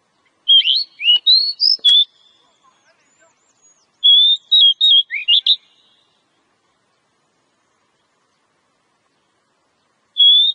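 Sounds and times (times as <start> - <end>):
Oriental magpie-robin song used as a lure recording: 0.2 - 6.2, 9.8 - 10.5.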